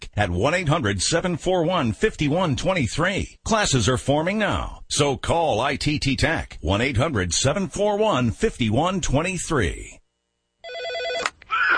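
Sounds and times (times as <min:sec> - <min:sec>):
speech: 0:00.2 - 0:10.0
old PBX office phone system ringing with a warbling electronic tone: 0:10.6 - 0:11.4.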